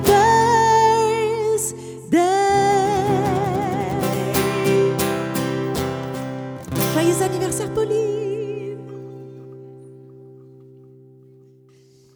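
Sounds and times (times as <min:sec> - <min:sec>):
birthday song duet: 0:00.0 - 0:09.7.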